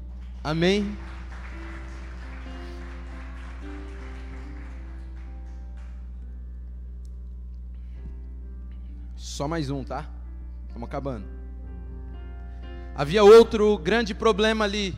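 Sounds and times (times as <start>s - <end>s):
applause: 0.0s - 6.1s
speech: 0.4s - 1.1s, 9.4s - 10.2s, 10.8s - 11.4s, 13.0s - 14.9s.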